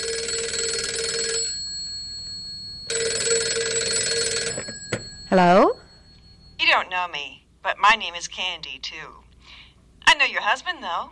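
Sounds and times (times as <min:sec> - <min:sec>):
telephone ringing: 0:00.0 - 0:06.9
speech: 0:05.3 - 0:05.8, 0:07.0 - 0:09.2, 0:10.2 - 0:11.1.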